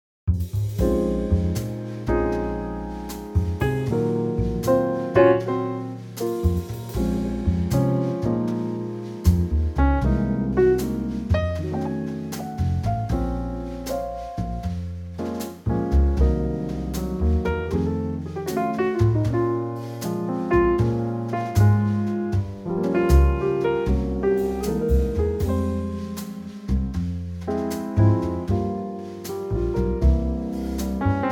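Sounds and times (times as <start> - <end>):
trio piece in B-flat minor: 0.5 - 31.3.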